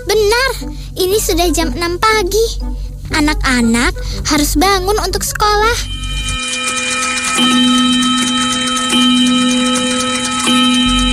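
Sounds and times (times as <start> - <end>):
speech: 0.1 - 6.8, 7.4 - 8.3
wall clock alarm ringing: 5.4 - 11.1.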